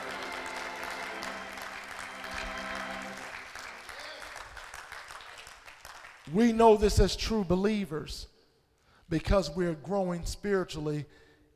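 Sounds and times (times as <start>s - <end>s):
audience clapping hands: 0.0s - 6.6s
speech: 6.3s - 8.3s, 9.1s - 11.2s.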